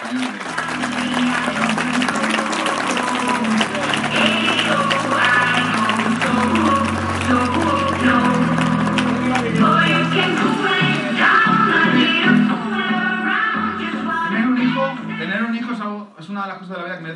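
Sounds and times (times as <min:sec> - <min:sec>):
audience applause: 0:00.0 - 0:11.4
low hum of crowd voices: 0:00.0 - 0:15.4.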